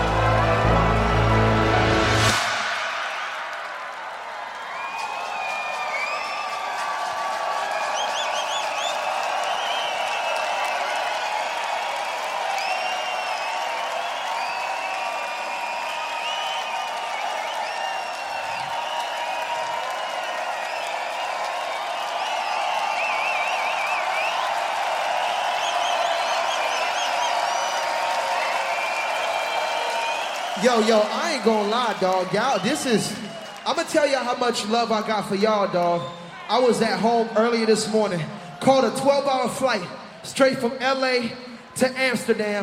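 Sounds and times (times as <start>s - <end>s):
burst of music: 0.0s - 5.2s
concert crowd cheering and applauding: 0.0s - 42.6s
shrill whistles: 4.6s - 6.9s, 7.7s - 11.8s, 12.4s - 31.5s, 35.9s - 36.4s
speech: 30.7s - 42.6s.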